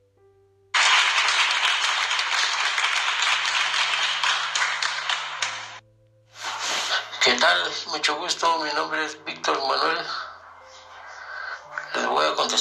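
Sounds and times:
audience applause: 0:00.8 - 0:05.8
speech: 0:07.3 - 0:10.2, 0:12.2 - 0:12.6.

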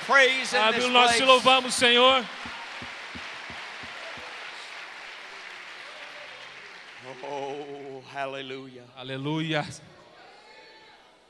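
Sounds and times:
speech: 0:00.1 - 0:02.4, 0:08.2 - 0:09.9
audience applause: 0:00.6 - 0:08.1.

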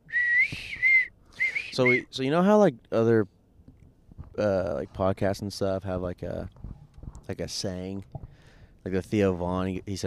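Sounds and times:
bird call whistle: 0:00.0 - 0:02.1
speech: 0:01.8 - 0:03.4, 0:04.4 - 0:06.7, 0:07.3 - 0:08.2, 0:08.8 - 0:10.0.

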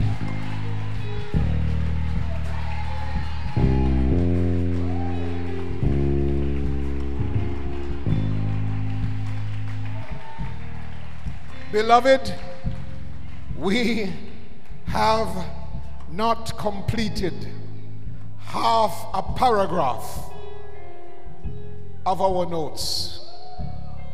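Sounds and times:
audience clapping hands: 0:00.0 - 0:16.1
speech: 0:11.7 - 0:12.5, 0:13.6 - 0:14.2, 0:14.9 - 0:15.6, 0:16.2 - 0:17.6, 0:18.5 - 0:20.3, 0:22.0 - 0:23.2.

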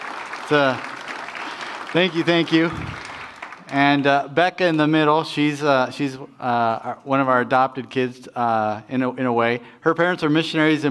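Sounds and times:
audience applause: 0:00.0 - 0:03.8
speech: 0:00.5 - 0:00.9, 0:01.9 - 0:03.0, 0:03.7 - 0:10.9.

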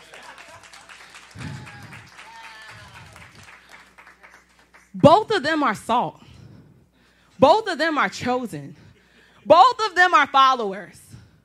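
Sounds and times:
audience clapping: 0:00.0 - 0:05.1
speech: 0:05.0 - 0:06.2, 0:07.4 - 0:08.8, 0:09.5 - 0:11.0.

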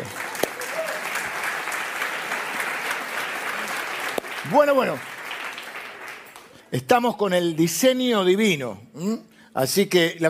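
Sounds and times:
audience applause: 0:00.0 - 0:06.6
speech: 0:04.5 - 0:05.1, 0:06.7 - 0:10.2.

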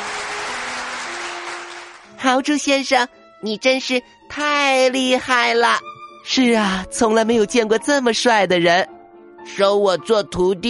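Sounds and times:
enthusiastic applause: 0:00.0 - 0:02.1
speech: 0:02.3 - 0:10.6.

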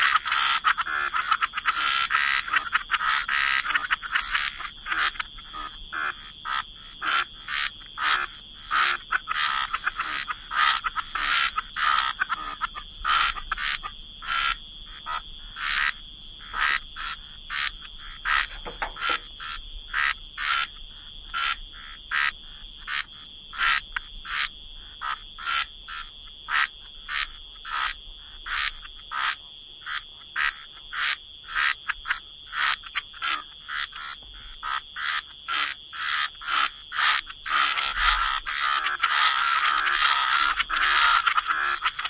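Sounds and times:
frogs croaking: 0:00.0 - 0:42.0
sharp click: 0:18.5 - 0:19.3.

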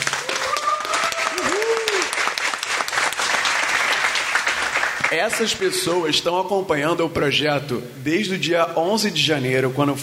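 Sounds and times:
applause: 0:00.0 - 0:05.7
whoops and cheers: 0:00.1 - 0:02.3
speech: 0:05.1 - 0:10.0.

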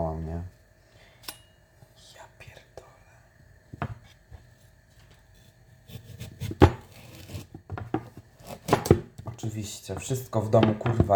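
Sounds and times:
knife cutting food lengthwise in half: 0:05.9 - 0:09.1
speech: 0:09.6 - 0:11.1.

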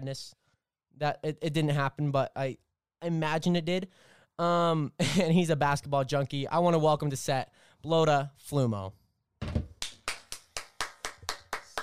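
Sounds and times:
speech: 0:00.0 - 0:00.4, 0:01.0 - 0:09.0
one person clapping: 0:09.8 - 0:11.8.

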